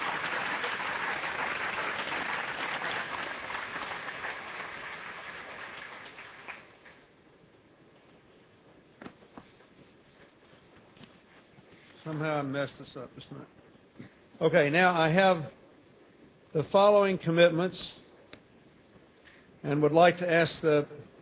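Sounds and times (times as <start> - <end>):
audience applause: 0.0 - 6.9
speech: 12.1 - 13.6, 14.4 - 15.6, 16.5 - 18.0, 19.6 - 21.0.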